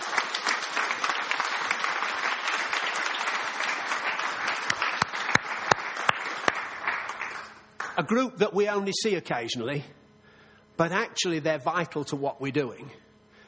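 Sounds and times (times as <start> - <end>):
audience applause: 0.0 - 8.0
speech: 8.0 - 10.0, 10.8 - 13.0.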